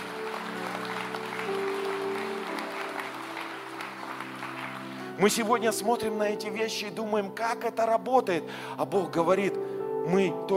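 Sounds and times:
large audience applause: 0.0 - 5.6
speech: 5.2 - 10.5.

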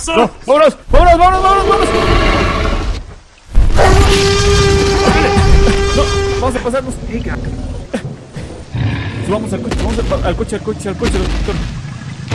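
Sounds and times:
speech: 0.0 - 2.2, 6.4 - 7.8, 9.3 - 11.8
tyrannosaurus roar: 1.6 - 3.0, 3.6 - 11.3
heavy rumbling footsteps: 3.0 - 6.1, 9.6 - 12.3.

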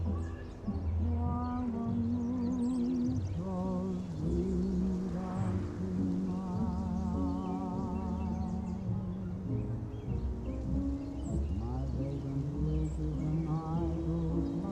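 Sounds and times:
summer oldies music playing in another room: 0.0 - 14.7
wavering singing voice: 0.0 - 14.7.

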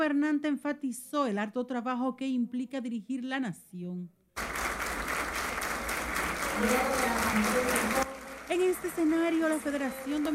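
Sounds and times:
speech: 0.0 - 4.5, 6.6 - 10.3
audience clapping: 4.4 - 10.3.

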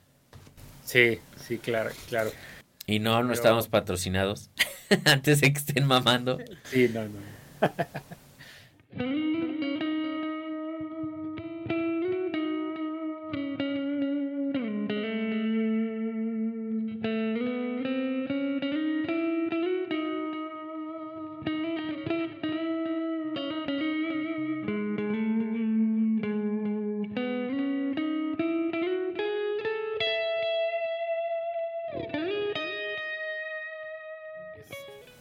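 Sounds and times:
speech: 0.9 - 8.2, 9.0 - 9.2
laughter: 7.6 - 8.2
distorted guitar through Fractal amp modeler: 8.9 - 35.1.

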